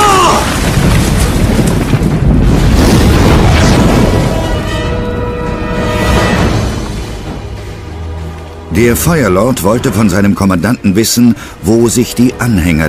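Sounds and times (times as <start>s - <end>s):
ship exploding: 0.0s - 7.9s
crackling debris: 0.0s - 10.1s
speech: 8.8s - 12.8s.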